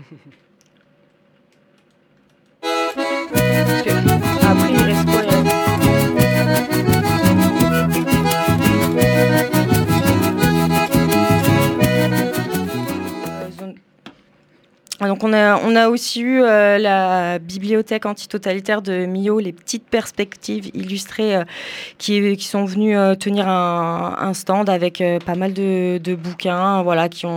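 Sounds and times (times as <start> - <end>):
speech: 0.0 - 0.6, 15.2 - 27.3
short musical jingle with percussive beat: 2.6 - 13.6.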